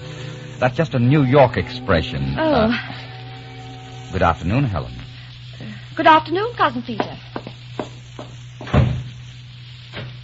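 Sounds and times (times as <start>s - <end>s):
speech: 0.6s - 3.2s, 4.1s - 5.0s, 5.6s - 7.3s
door banging shut: 8.7s - 9.1s.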